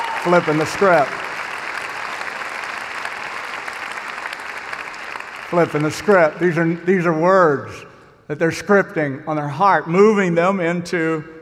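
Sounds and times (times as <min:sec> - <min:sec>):
crowd clapping: 0:00.0 - 0:06.6
speech: 0:00.2 - 0:01.2, 0:05.5 - 0:11.4.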